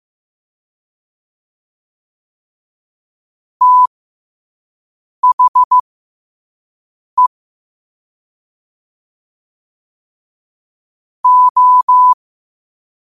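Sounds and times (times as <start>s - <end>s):
morse code at 5 wpm: 3.6s - 3.9s, 5.2s - 5.8s, 11.2s - 12.2s.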